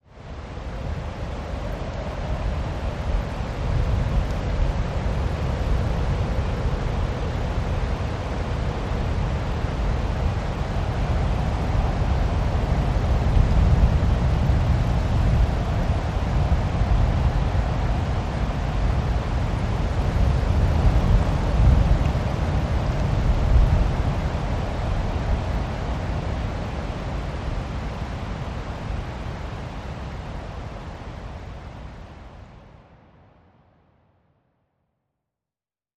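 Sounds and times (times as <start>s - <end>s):
snow storm: 0.0s - 33.8s.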